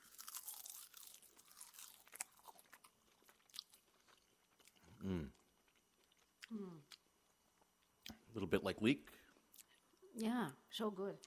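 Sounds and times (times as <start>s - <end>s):
person chewing raw crunchy ramp leaves: 0.0s - 7.0s
speech: 8.4s - 9.2s, 10.2s - 11.2s.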